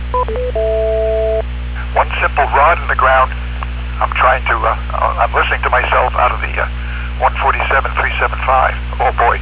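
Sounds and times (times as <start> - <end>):
radio repeater time-out tone: 0.2 - 1.4
speech: 2.0 - 9.4.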